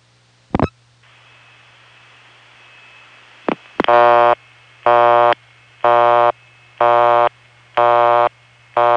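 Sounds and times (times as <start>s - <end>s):
faint steady tone: 0.6s - 8.9s
Bell System telephone busy signal: 3.9s - 8.9s.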